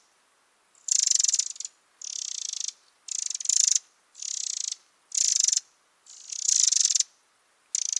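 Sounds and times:
Eurasian wren Troglodytes troglodytes giving dry rattling churrs: 0:00.8 - 0:07.0, 0:07.7 - 0:07.9.

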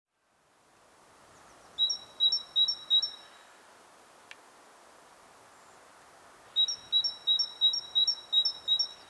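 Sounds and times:
Great tit singing two-note pairs: 0:01.8 - 0:03.3, 0:06.6 - 0:09.0.

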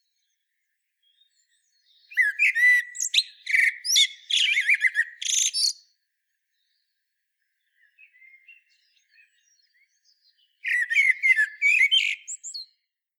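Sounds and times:
common blackbird singing: 0:01.0 - 0:05.9, 0:07.6 - 0:12.8.

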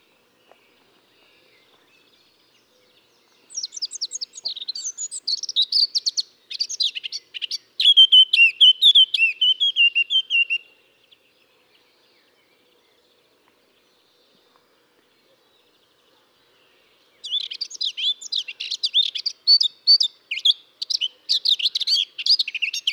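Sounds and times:
Eurasian blackcap singing: 0:03.5 - 0:10.6, 0:17.2 - 0:22.9.

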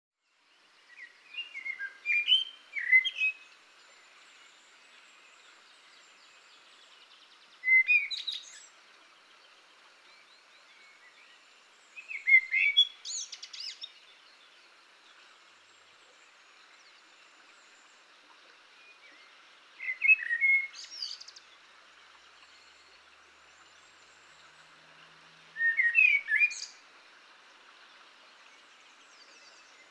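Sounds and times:
Eurasian blackbird singing: 0:01.0 - 0:03.4, 0:07.6 - 0:08.6, 0:12.0 - 0:13.9, 0:19.8 - 0:21.3, 0:25.6 - 0:26.8.

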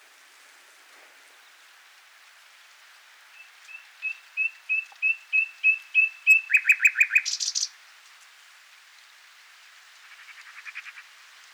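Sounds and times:
Common nightingale song phrase: 0:03.4 - 0:07.7.

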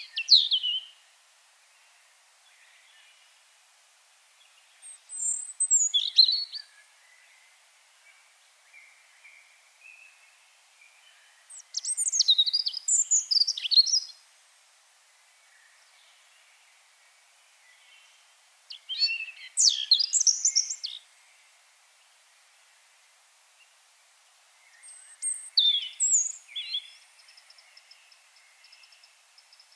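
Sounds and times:
European robin singing: 0:00.0 - 0:01.0, 0:04.4 - 0:14.3, 0:17.6 - 0:21.5, 0:24.6 - 0:29.7.

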